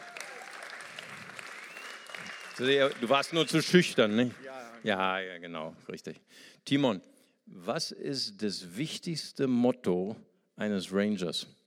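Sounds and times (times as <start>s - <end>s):
audience applause: 0.0s - 5.2s
speech: 2.6s - 11.6s.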